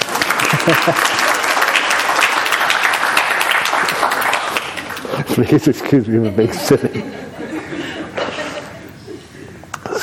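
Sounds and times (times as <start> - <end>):
crowd applause: 0.0 - 5.6
laughter: 0.3 - 1.4, 5.0 - 9.6
speech: 0.7 - 1.2, 5.3 - 7.3.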